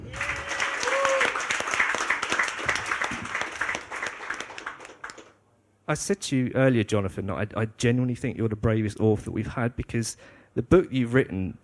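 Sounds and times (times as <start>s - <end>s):
audience applause: 0.0s - 5.4s
speech: 5.9s - 11.6s.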